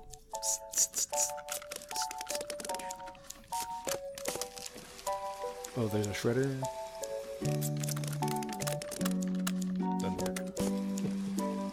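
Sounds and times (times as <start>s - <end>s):
scissors in music: 0.0s - 4.7s, 7.4s - 10.8s
staplers in music: 0.0s - 6.2s, 6.9s - 11.1s
scotch tape in music: 0.1s - 4.8s, 7.4s - 10.8s
speech: 0.4s - 4.0s, 5.8s - 6.8s, 7.4s - 8.0s.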